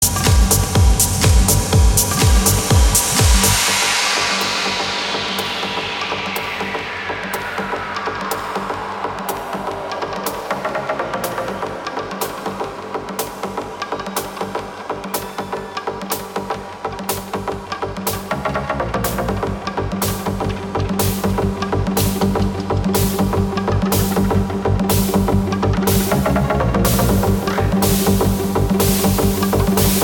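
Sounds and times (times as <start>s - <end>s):
house music jam: 0.0s - 30.0s.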